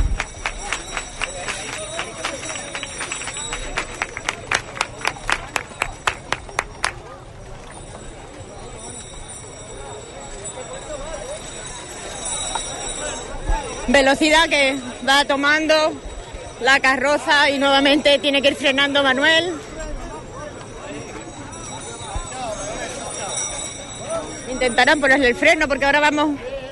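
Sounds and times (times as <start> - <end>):
crowd clapping palmas: 0.0 - 7.1
busy murmur of voices and crowd noise: 0.0 - 26.6
speech: 14.0 - 19.7, 24.6 - 26.5.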